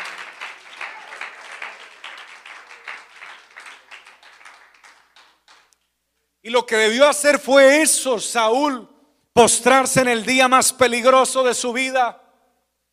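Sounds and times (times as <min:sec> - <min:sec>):
audience applause: 0:00.0 - 0:05.7
speech: 0:06.4 - 0:12.2.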